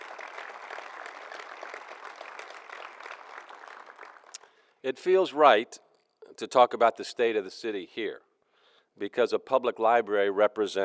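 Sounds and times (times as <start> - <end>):
audience round of applause: 0.0 - 4.4
speech: 4.8 - 8.3, 9.0 - 10.8.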